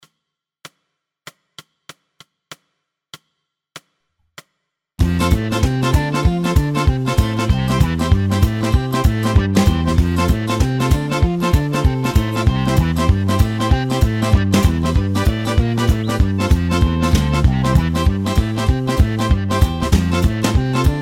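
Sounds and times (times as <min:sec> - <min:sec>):
Balkan backing track: 0:05.0 - 0:21.0.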